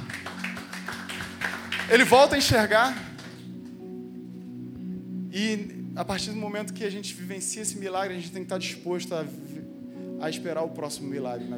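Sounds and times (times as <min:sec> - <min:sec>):
round of applause: 0:00.0 - 0:03.8
speech: 0:01.9 - 0:03.1, 0:05.4 - 0:09.6, 0:10.2 - 0:11.5.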